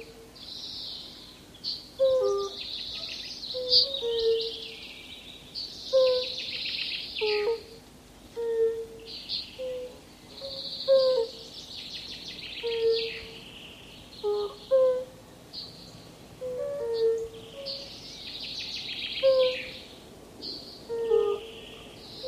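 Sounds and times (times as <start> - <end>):
European fire-bellied toad calling: 2.0 - 4.8, 5.9 - 7.7, 8.4 - 11.4, 12.6 - 13.5, 14.2 - 15.1, 19.2 - 19.8, 20.9 - 21.6.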